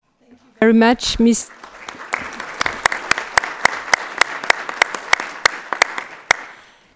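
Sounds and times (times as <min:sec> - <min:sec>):
speech: 0:00.6 - 0:01.6
audience applause: 0:01.5 - 0:06.6.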